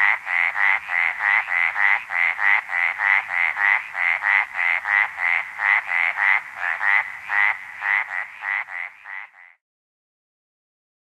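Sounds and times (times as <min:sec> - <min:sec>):
Arizona treefrog calling in North America: 0:00.0 - 0:09.6.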